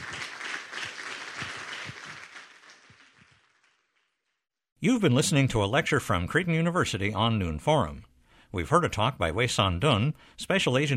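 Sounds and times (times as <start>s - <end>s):
audience applause: 0.0s - 3.9s
speech: 4.8s - 10.9s.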